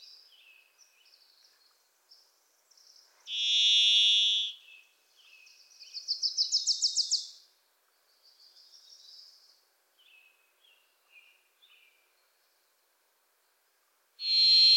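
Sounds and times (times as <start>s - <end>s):
varied thrush buzzy whistled song note: 3.3s - 4.6s, 14.2s - 14.7s.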